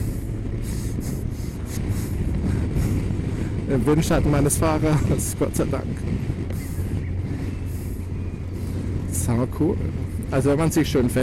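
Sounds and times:
motorcycle accelerating, heard from pillion: 0.0 - 11.2
speech: 3.7 - 6.3, 9.3 - 11.2.

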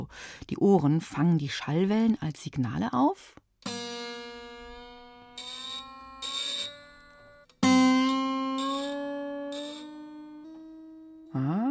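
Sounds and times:
speech: 0.1 - 3.4
two sustained guitar notes: 3.6 - 11.6.

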